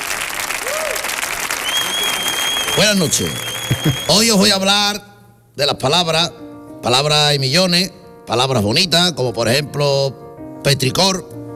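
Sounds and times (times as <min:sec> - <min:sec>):
audience applause: 0:00.0 - 0:04.4
faint whistle: 0:01.6 - 0:04.4
speech: 0:02.8 - 0:11.4.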